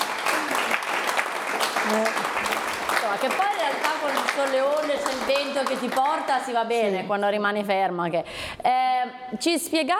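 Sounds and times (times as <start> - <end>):
studio audience applause: 0.0 - 6.6
speech: 1.8 - 9.9.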